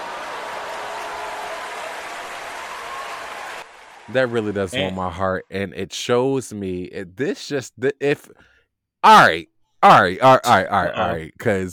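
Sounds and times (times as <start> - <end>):
applause sound effect: 0.0 - 4.8
speech: 4.1 - 11.7.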